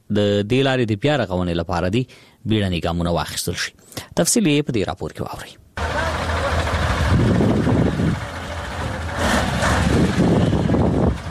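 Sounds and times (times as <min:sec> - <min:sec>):
speech: 0:00.1 - 0:05.6
large trucks driving on a muddy road between Uruzgan and Kandahar: 0:05.8 - 0:11.2.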